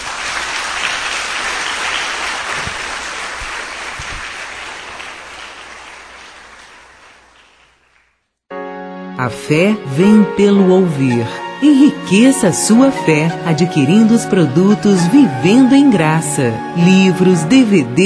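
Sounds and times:
audience applause in a church: 0:00.0 - 0:08.2
speech: 0:09.2 - 0:18.0.

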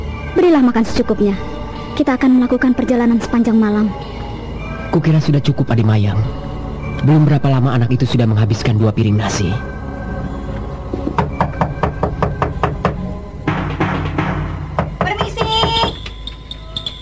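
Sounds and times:
speech: 0:00.4 - 0:04.1, 0:04.9 - 0:06.4, 0:07.0 - 0:09.7
inn servant knocking on a door: 0:11.0 - 0:16.1.

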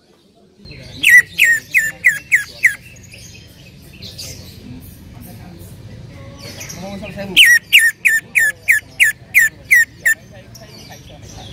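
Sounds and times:
bird singing: 0:00.7 - 0:04.6, 0:06.4 - 0:11.5.

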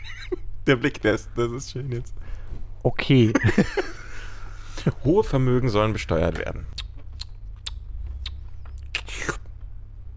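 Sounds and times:
laughter: 0:00.0 - 0:01.3, 0:03.1 - 0:05.2
speech: 0:00.7 - 0:04.0, 0:04.8 - 0:06.8
person slurping a drink: 0:08.1 - 0:09.5.

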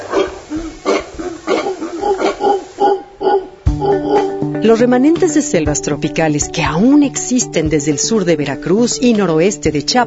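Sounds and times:
howler monkey calling: 0:00.0 - 0:04.6
speech: 0:04.6 - 0:10.0.

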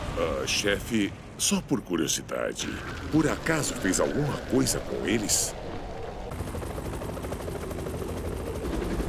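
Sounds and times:
speech: 0:00.2 - 0:05.7
news helicopter rotor: 0:02.7 - 0:09.0.

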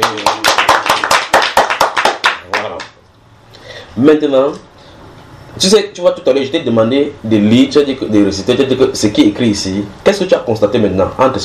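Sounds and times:
audience applause: 0:00.0 - 0:02.9
speech: 0:04.0 - 0:04.7, 0:05.6 - 0:11.4.

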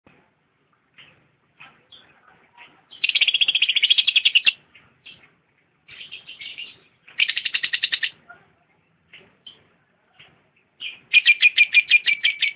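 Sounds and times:
lovebird chattering with shrill notes and whistles: 0:02.9 - 0:05.2, 0:05.9 - 0:08.2, 0:10.8 - 0:12.5.

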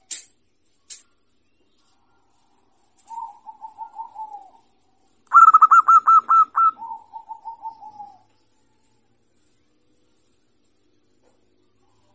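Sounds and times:
zebra dove cooing: 0:03.0 - 0:09.0.

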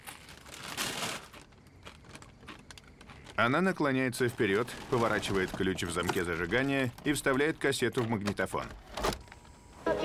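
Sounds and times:
woman eating potato chips: 0:00.0 - 0:06.7
speech: 0:03.4 - 0:08.8.

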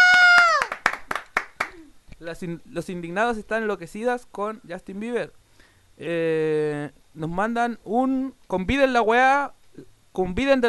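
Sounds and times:
drawn-out shouting voice: 0:00.0 - 0:00.7
hand clapping for a singer's arrival: 0:00.0 - 0:01.9
speech: 0:02.2 - 0:05.4, 0:06.0 - 0:10.6.

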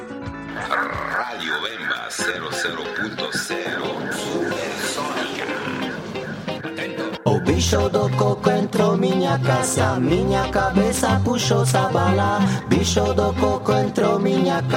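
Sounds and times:
pop song played on radio: 0:00.1 - 0:14.7
speech: 0:01.4 - 0:03.8, 0:07.6 - 0:14.7.

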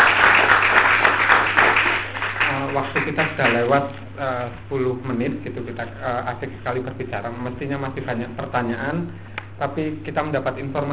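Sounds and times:
audience clapping for two speakers at a history discussion: 0:00.0 - 0:03.8
speech: 0:03.1 - 0:10.9.

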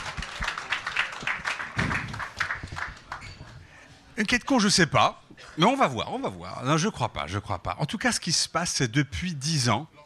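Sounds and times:
audience applause: 0:00.0 - 0:03.3
speech: 0:04.2 - 0:10.0.

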